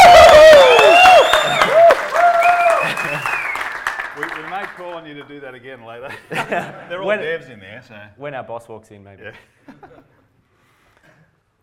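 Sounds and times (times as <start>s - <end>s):
audience applause: 0.0s - 5.3s
laughter: 2.7s - 3.5s, 6.0s - 7.4s
speech: 6.2s - 10.1s.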